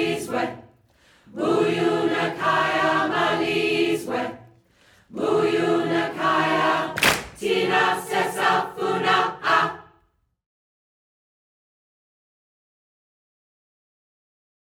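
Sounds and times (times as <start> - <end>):
community choir singing: 0.0 - 10.1.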